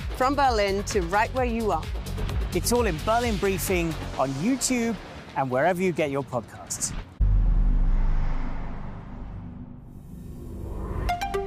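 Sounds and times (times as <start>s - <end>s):
speech: 0.2s - 7.1s
combustion car engine accelerating: 7.2s - 11.4s.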